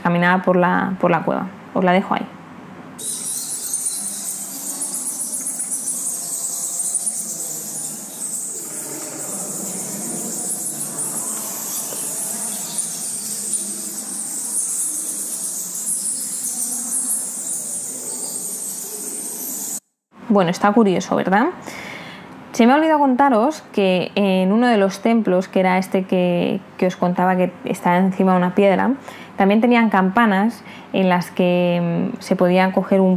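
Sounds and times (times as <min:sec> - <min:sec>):
speech: 0:00.1 - 0:02.4, 0:20.4 - 0:21.9, 0:22.6 - 0:33.1
bats squeaking and chittering inside a cave: 0:03.0 - 0:19.8.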